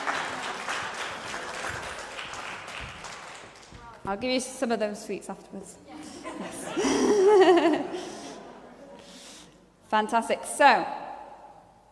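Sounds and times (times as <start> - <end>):
audience clapping: 0.0 - 4.1
speech: 4.0 - 7.6, 9.9 - 11.0
laughter: 6.0 - 9.0.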